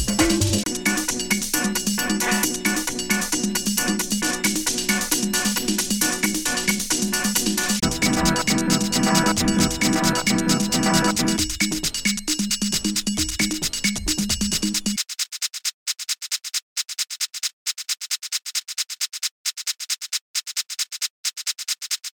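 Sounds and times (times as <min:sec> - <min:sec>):
dubstep music: 0:00.0 - 0:14.9.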